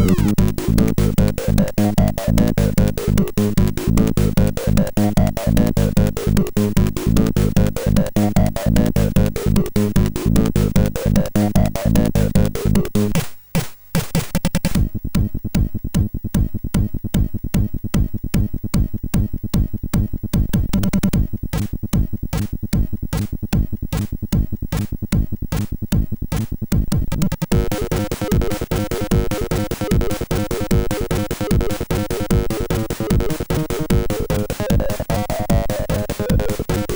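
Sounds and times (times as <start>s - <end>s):
techno music on a MOS6581R4 SID chip: 0.0s - 36.9s.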